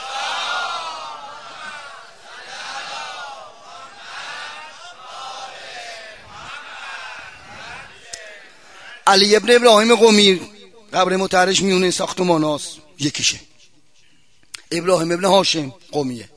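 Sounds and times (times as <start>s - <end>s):
crowd reciting salawat in unison: 0.0s - 9.2s
speech: 9.1s - 13.5s, 14.7s - 16.3s.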